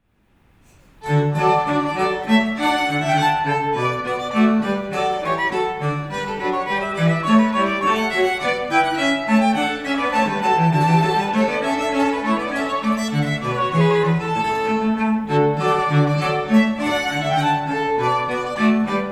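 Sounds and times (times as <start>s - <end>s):
march music: 1.0s - 19.1s.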